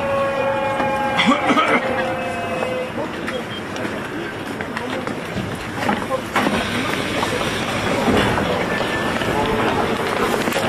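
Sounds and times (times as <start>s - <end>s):
Seoul Subway Line 1 train running: 0.0s - 10.6s.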